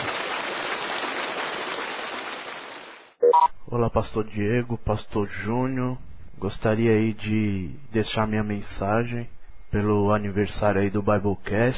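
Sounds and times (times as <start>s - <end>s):
audience applause: 0.0s - 3.1s
speech: 3.7s - 11.7s.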